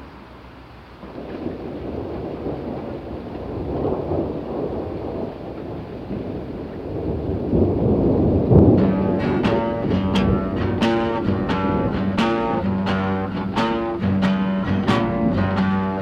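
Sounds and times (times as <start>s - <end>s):
rain: 0.0s - 15.9s
thunder: 1.0s - 13.4s.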